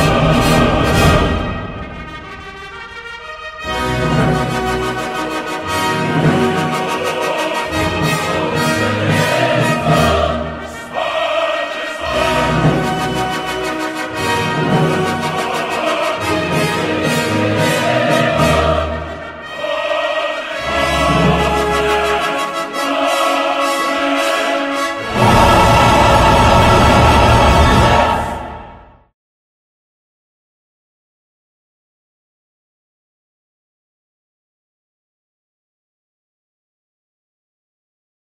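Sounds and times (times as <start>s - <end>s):
tuba: 0.0s - 28.6s.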